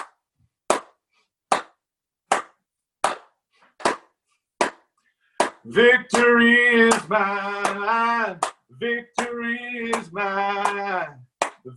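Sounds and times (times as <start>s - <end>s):
audience clapping in unison on a 2-4 beat: 0.0s - 11.7s
speech: 5.6s - 11.7s.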